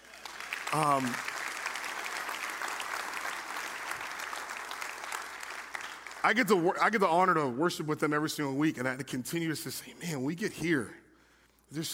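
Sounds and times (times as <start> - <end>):
applause for a worship team: 0.0 - 6.8
speech: 0.7 - 1.3, 6.2 - 11.0, 11.7 - 11.9.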